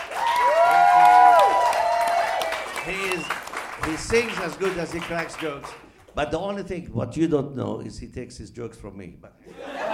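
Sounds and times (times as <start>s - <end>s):
cheering: 0.0s - 4.4s
applause: 0.0s - 6.2s
speech: 4.0s - 9.6s
laughter: 9.5s - 9.9s.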